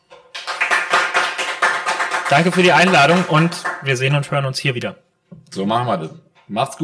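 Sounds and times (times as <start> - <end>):
audience applause: 0.3 - 4.3
speech: 2.3 - 6.8.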